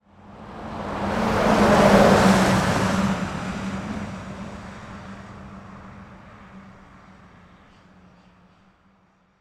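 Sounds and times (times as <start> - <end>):
transport truck passing in Europe: 0.2 - 7.6.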